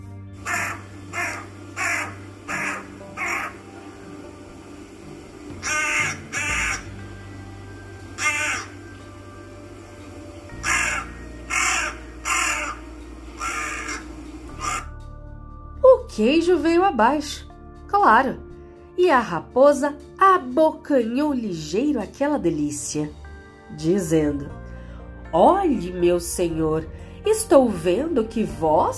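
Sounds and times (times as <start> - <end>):
low steady hum: 0.0 - 17.1
crow cawing in harsh raspy bursts: 0.4 - 3.6, 5.6 - 7.0, 8.2 - 8.8, 10.6 - 15.0
speech: 16.2 - 18.4, 19.0 - 24.6, 25.3 - 28.9.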